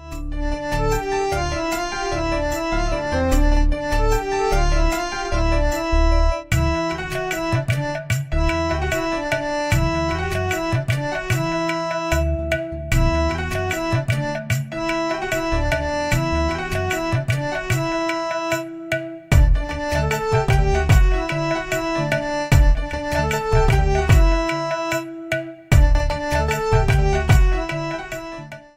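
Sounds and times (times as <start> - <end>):
Tamil sweet melody ringtone: 0.0 - 28.7.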